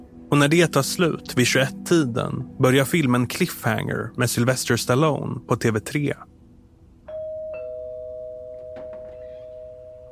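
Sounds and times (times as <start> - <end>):
speech: 0.3 - 6.3
doorbell ringing: 7.1 - 10.1.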